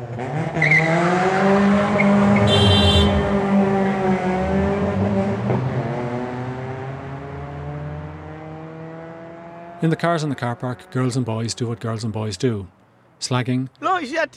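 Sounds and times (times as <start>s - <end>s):
car engine revving: 0.0s - 11.3s
speech: 0.2s - 1.0s, 9.8s - 14.3s
tire squeal from spinning wheels: 0.6s - 3.5s.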